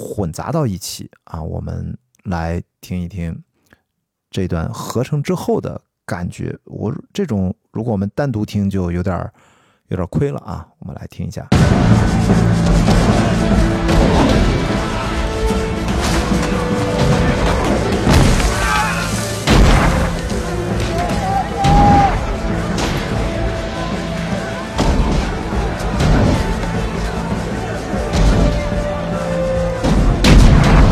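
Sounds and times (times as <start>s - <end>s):
speech: 0.1s - 3.5s, 4.3s - 14.3s
battle booms and blasts: 11.5s - 30.8s
war drums pounding: 11.5s - 30.8s.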